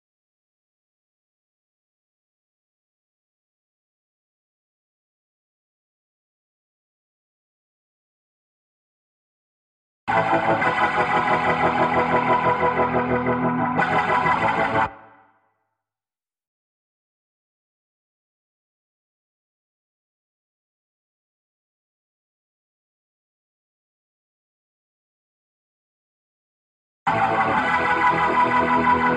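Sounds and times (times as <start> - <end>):
guitar: 10.1 - 15.3, 27.1 - 29.1.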